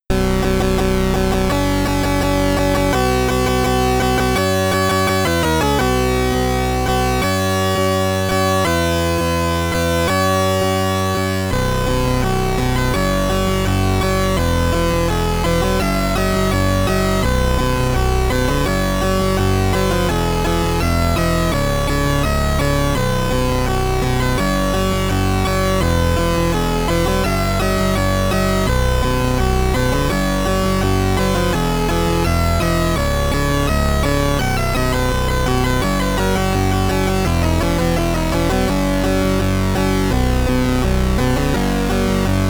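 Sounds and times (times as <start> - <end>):
SID chip stereo chiptune music: 0.2 - 42.4.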